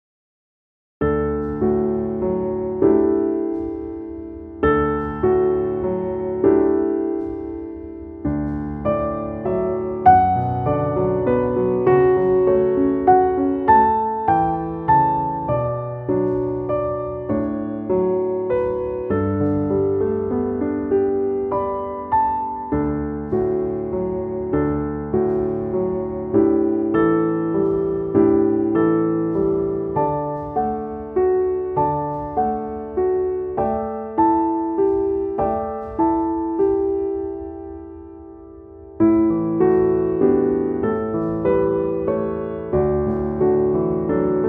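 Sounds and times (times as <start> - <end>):
piano: 1.0 - 44.4.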